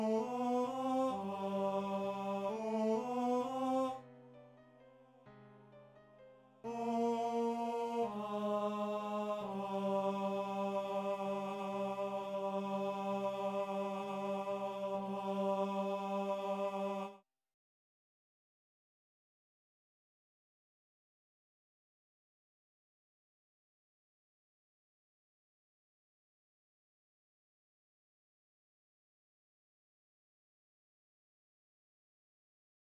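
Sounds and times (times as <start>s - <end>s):
TTBB male choir singing: 0.0s - 4.0s, 6.7s - 17.2s.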